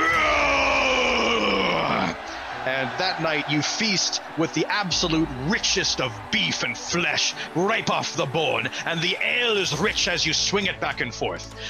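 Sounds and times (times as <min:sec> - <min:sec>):
man's guttural battle roar: 0:00.0 - 0:02.3
speech: 0:03.0 - 0:11.6.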